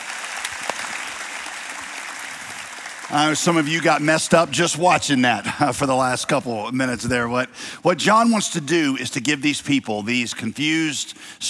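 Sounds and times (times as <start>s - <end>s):
faint applause from a church congregation: 0.0s - 4.0s
speech: 3.1s - 11.4s.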